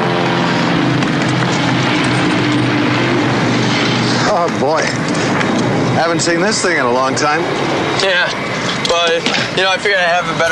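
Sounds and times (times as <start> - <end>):
low humming tones: 0.0 - 9.6
aircraft engine drone at an airport: 0.0 - 10.5
speech: 4.4 - 5.1, 6.0 - 10.5.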